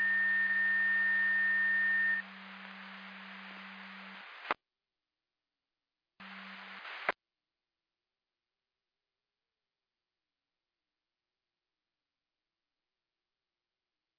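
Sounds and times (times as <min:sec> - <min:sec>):
siren: 0:00.0 - 0:04.2.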